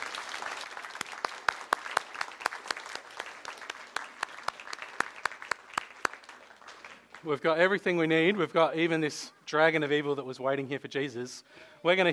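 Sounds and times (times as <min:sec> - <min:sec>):
audience applause: 0:00.0 - 0:07.3
speech: 0:07.2 - 0:12.1.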